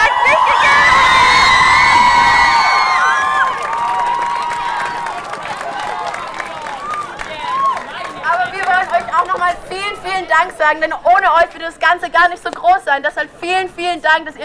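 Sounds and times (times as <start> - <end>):
crowd applause: 0.0 - 10.7
speech: 10.7 - 14.4.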